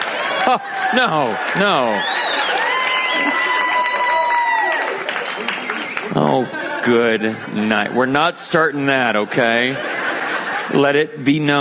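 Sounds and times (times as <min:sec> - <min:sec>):
audience clapping: 0:00.0 - 0:07.2
laughter: 0:00.1 - 0:04.0, 0:04.7 - 0:11.5
speech: 0:00.5 - 0:02.2, 0:06.1 - 0:09.9, 0:10.7 - 0:11.5.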